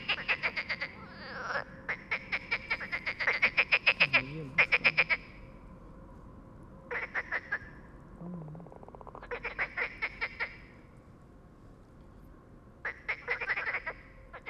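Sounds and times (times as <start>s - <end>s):
frogs croaking: 0.0s - 11.0s, 12.7s - 14.4s.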